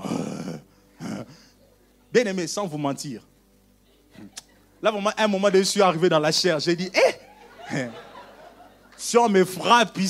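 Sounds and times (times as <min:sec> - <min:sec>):
voice imitating sniffing: 0:00.0 - 0:01.6
speech: 0:02.2 - 0:03.3, 0:04.2 - 0:08.1, 0:09.0 - 0:10.0
laughter: 0:04.0 - 0:04.9, 0:06.9 - 0:10.0.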